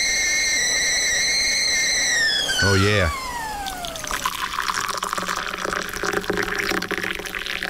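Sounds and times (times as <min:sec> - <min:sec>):
faint high tone gliding downward: 0:00.0 - 0:04.4
speech: 0:02.6 - 0:03.2
hot water pouring into a cup for tea: 0:04.0 - 0:07.6.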